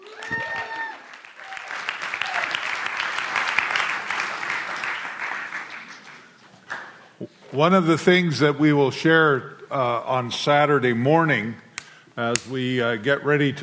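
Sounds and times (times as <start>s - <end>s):
audience cheering: 0.0s - 6.0s
audience applause: 0.0s - 7.0s
speech: 7.5s - 11.6s, 12.2s - 13.6s.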